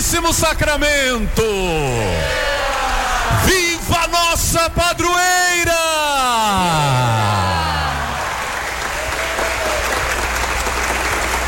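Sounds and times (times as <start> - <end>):
speech: 0.1 - 2.5, 3.4 - 7.4
audience clapping hands: 6.5 - 11.4.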